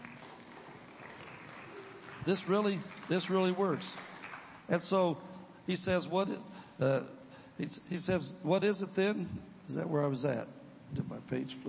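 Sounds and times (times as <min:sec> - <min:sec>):
audience clapping: 0:00.0 - 0:05.1
speech: 0:02.2 - 0:04.1, 0:04.7 - 0:11.6.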